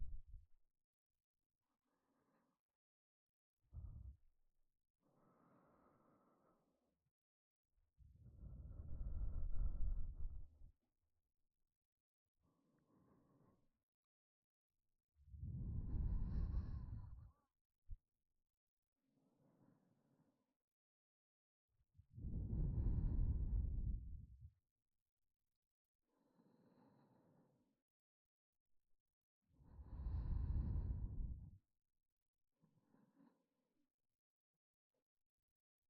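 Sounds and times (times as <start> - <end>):
person breathing in sleep: 5.0 - 6.8, 8.4 - 10.4, 15.5 - 17.4, 22.2 - 24.2, 29.7 - 31.5.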